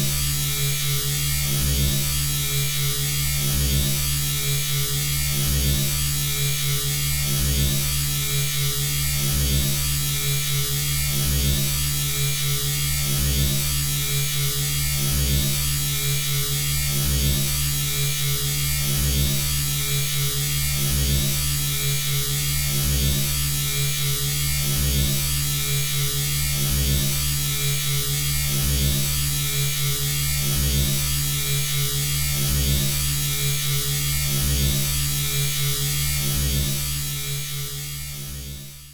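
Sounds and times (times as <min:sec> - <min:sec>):
sci-fi force field energy source: 0:00.0 - 0:38.9.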